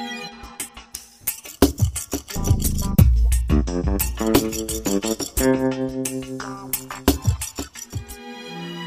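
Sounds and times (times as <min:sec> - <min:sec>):
medium orchestral twist: 0:01.3 - 0:08.2.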